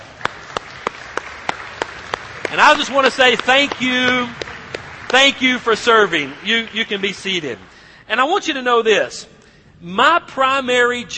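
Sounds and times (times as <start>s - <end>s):
audience applauding: 0.0s - 7.9s
speech: 2.5s - 4.4s, 5.1s - 11.1s.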